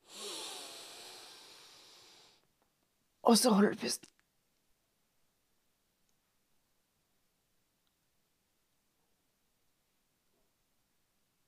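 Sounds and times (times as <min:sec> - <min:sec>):
deep inhale through the nose: 0:00.0 - 0:02.5
speech: 0:03.3 - 0:04.2.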